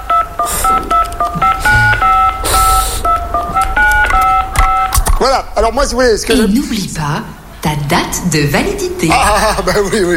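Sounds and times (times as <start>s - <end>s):
telephone keypad tones being dialed: 0.0s - 5.0s
rough hiss: 0.0s - 10.1s
speech: 5.6s - 10.1s.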